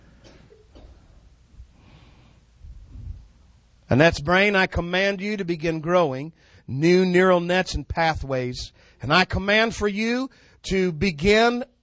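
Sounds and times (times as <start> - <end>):
person taking a deep breath during a prayer healing session: 1.7 - 3.2, 10.3 - 10.6
speech: 3.9 - 11.8.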